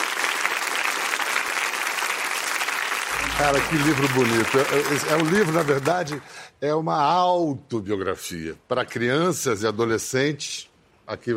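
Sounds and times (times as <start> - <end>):
audience applause: 0.0 - 6.4
speech: 3.2 - 11.3.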